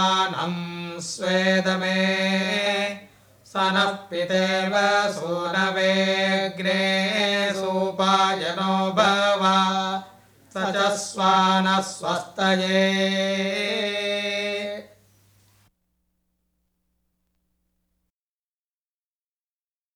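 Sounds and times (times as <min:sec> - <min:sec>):
opening hymn chanting: 0:00.0 - 0:15.0.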